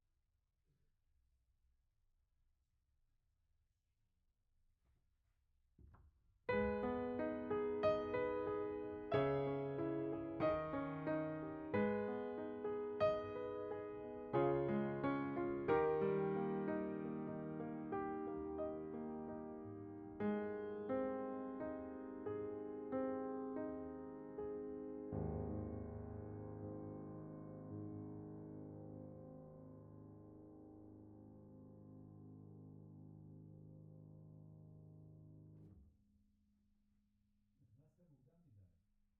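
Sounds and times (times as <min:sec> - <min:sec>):
piano note B: 0:06.5 - 0:35.7.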